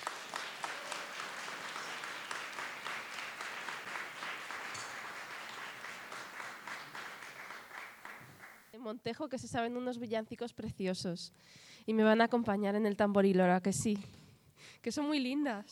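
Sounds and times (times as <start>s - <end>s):
audience applause at a church concert in Montejo de la Sierra: 0.0s - 8.7s
speech: 8.8s - 15.7s.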